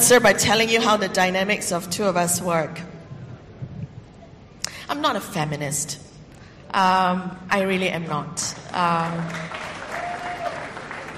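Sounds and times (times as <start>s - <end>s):
speech: 0.0s - 2.9s, 4.9s - 6.1s, 6.7s - 9.6s
audience clapping: 8.6s - 11.1s.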